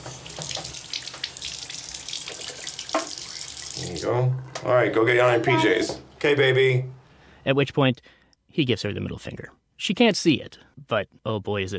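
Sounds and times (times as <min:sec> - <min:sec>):
person rinsing and spitting: 0:00.0 - 0:04.1
water running from a sink tap: 0:00.0 - 0:04.1
speech: 0:04.0 - 0:11.7.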